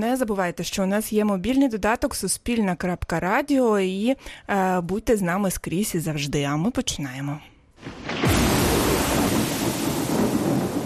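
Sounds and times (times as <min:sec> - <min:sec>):
speech: 0:00.0 - 0:08.1
thunder rumbling: 0:07.8 - 0:10.8.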